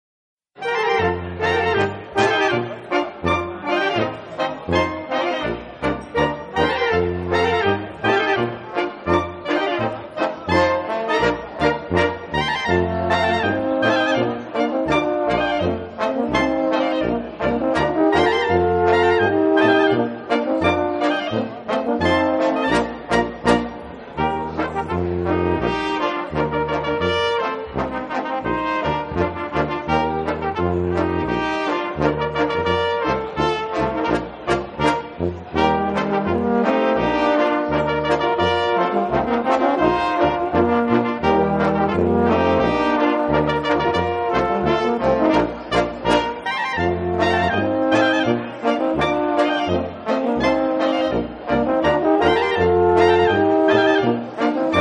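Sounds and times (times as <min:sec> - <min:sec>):
band playing a Boarischer: 0:00.6 - 0:54.7.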